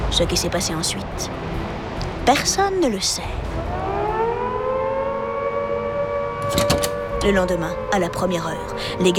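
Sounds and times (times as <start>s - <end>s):
speech: 0.1s - 1.6s, 2.3s - 3.7s, 6.5s - 9.1s
prison alarm siren wailing: 3.4s - 9.1s.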